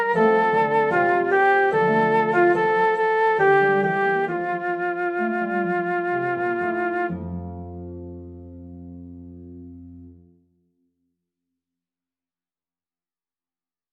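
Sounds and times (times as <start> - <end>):
flute: 0.0 - 8.4
harp: 0.0 - 10.0.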